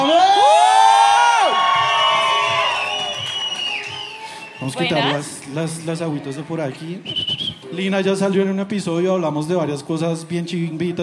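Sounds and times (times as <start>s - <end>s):
audience cheering and whooping: 0.0s - 5.2s
scattered clapping: 1.7s - 4.3s
speech: 4.7s - 11.0s.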